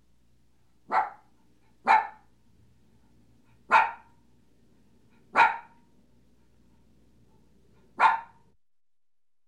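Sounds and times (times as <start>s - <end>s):
puppy barking: 0.9s - 2.3s, 3.7s - 4.1s, 5.3s - 5.8s, 8.0s - 8.4s.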